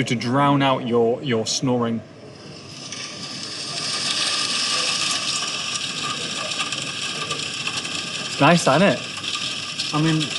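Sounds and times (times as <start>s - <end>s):
speech: 0.0s - 2.1s, 8.4s - 9.1s, 9.9s - 10.3s
recorded medium rain on a tent: 2.6s - 10.3s.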